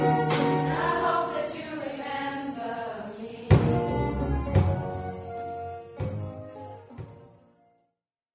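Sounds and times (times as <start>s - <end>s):
choir singing for an advertisement: 0.0s - 7.1s.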